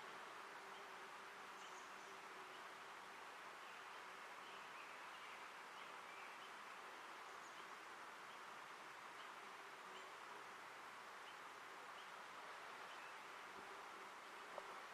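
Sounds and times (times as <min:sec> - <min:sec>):
rustling leaves or wind in the Ancient Forest Preserve of Portland, Oregon: 0:00.0 - 0:14.9.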